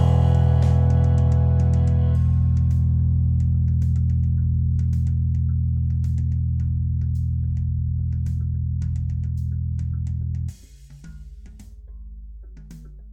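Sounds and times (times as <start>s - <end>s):
Jazz Bass bass guitar played with pick: 0.0s - 10.8s.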